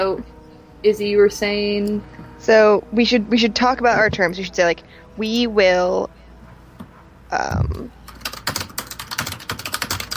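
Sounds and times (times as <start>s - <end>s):
speech: 0.0s - 6.2s, 7.3s - 8.0s
computer keyboard typing: 7.6s - 10.1s.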